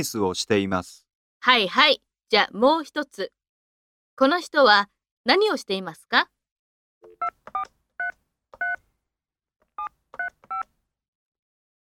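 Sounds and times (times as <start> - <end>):
speech: 0.0 - 3.4, 4.2 - 6.4
telephone keypad dialing tones: 7.0 - 8.8, 9.8 - 10.7.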